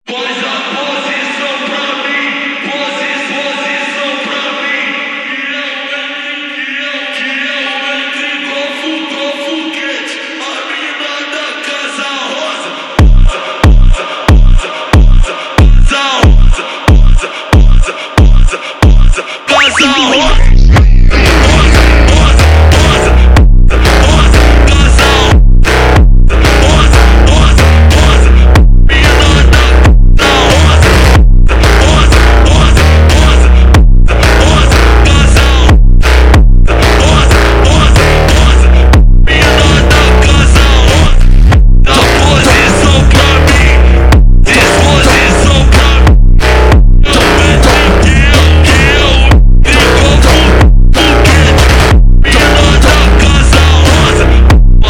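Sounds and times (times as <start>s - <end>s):
slowed phonk music: 0.7s - 54.8s.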